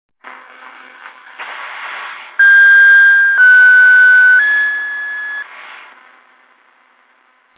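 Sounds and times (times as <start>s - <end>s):
radio signal at 2130 kHz: 2.4s - 5.9s.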